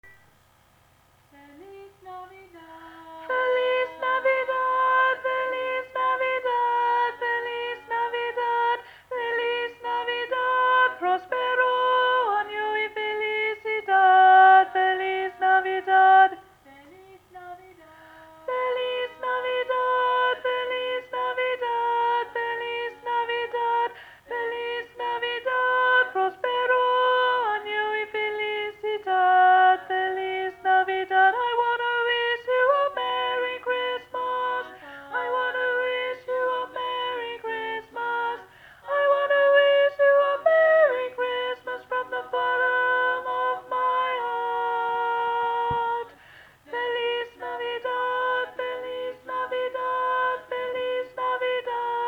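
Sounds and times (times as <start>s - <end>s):
tenor singing: 1.3s - 52.0s.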